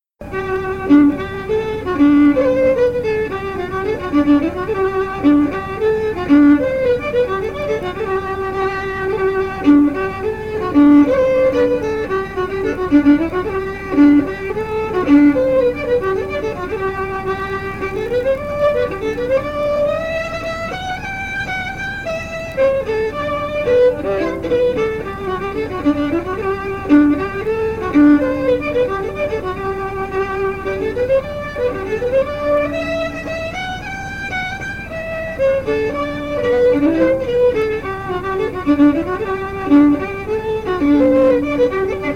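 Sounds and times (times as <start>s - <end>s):
fiddle: 0.0s - 42.1s.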